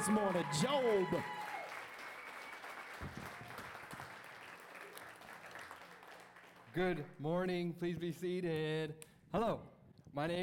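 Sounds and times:
speech: 0:00.0 - 0:01.4, 0:06.8 - 0:10.4
church congregation applauding a pastor at a morning service: 0:00.0 - 0:07.1.

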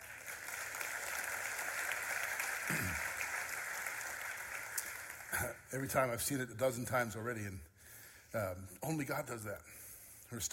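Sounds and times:
audience applauding: 0:00.0 - 0:05.7
speech: 0:05.7 - 0:07.7, 0:08.3 - 0:10.5.

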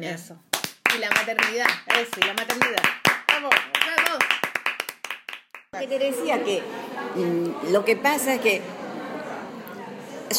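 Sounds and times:
speech: 0:00.0 - 0:04.4, 0:05.7 - 0:08.8
small group clapping: 0:00.5 - 0:05.8.

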